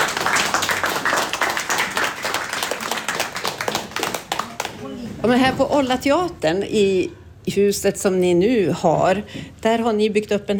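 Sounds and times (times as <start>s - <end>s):
applause: 0.0s - 4.9s
speech: 5.2s - 10.5s.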